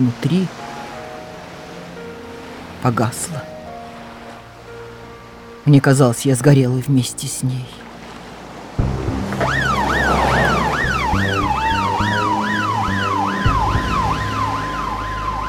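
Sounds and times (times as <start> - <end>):
speech: 0.0 - 0.7, 2.8 - 3.6, 5.6 - 7.8
ambulance siren wailing as it passes: 9.2 - 15.4.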